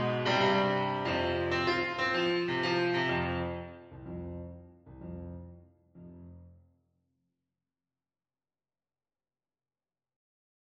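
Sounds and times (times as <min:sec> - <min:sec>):
piano accompaniment: 0:00.0 - 0:06.6.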